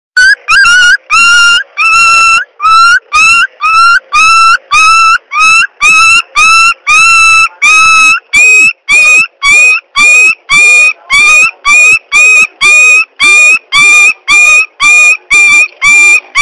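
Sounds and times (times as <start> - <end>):
dog whimpering: 0.2 - 16.3.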